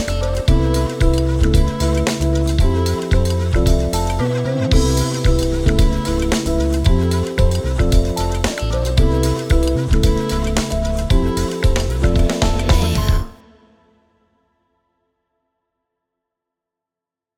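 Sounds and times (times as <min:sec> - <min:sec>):
drumless full music mix: 0:00.0 - 0:13.4.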